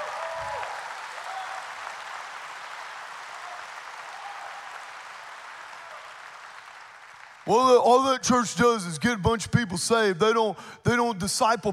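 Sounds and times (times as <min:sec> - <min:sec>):
audience applause: 0:00.0 - 0:07.5
speech: 0:07.4 - 0:11.7.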